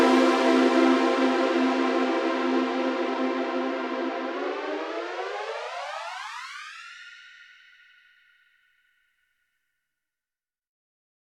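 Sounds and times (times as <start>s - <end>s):
hollow mellow synth lead: 0.0s - 6.4s.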